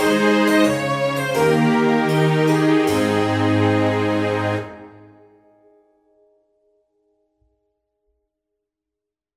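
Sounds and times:
trumpet tune: 0:00.0 - 0:05.3.

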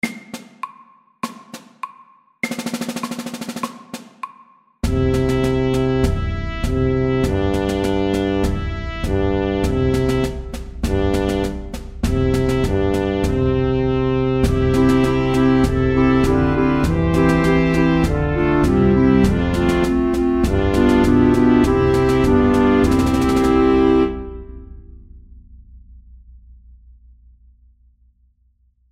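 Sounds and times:
march music: 0:04.8 - 0:24.8.

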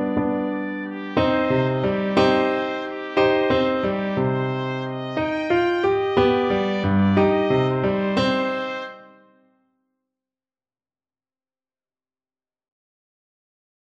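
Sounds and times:
bugle horn at a fort: 0:00.6 - 0:09.3.

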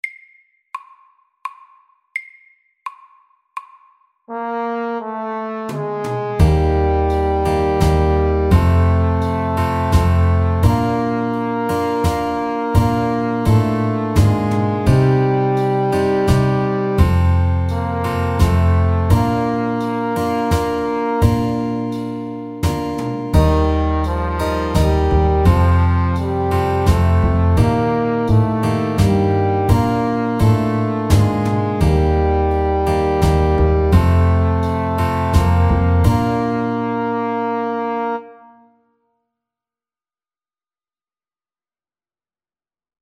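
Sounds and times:
ballade music: 0:04.3 - 0:38.4.

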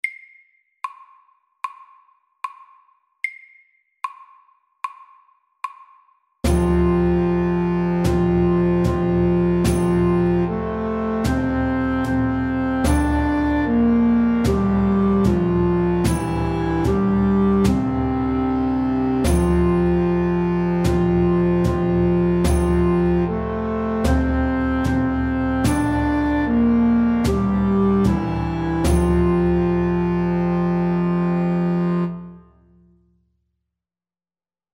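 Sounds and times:
slow English melody: 0:06.5 - 0:33.0.

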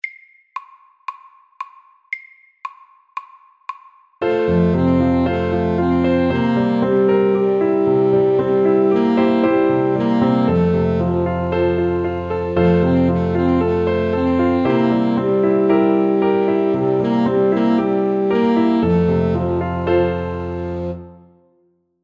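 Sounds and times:
fast Welsh melody: 0:04.2 - 0:21.3.

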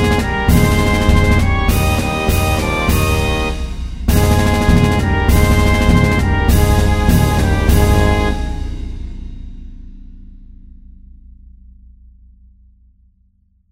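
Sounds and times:
march music at 100: 0:00.0 - 0:09.2.

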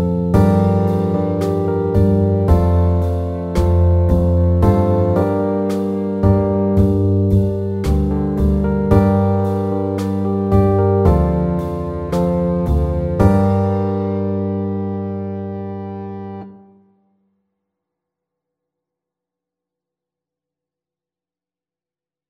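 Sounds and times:
slow pop ballad: 0:00.0 - 0:16.4.

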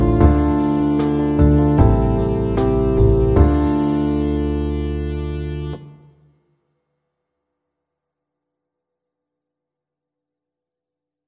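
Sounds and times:
fast pop ballad: 0:00.0 - 0:05.5.

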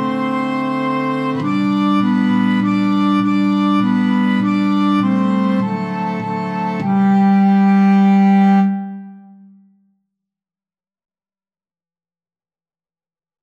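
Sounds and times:
slow Irish melody: 0:00.0 - 0:09.7.

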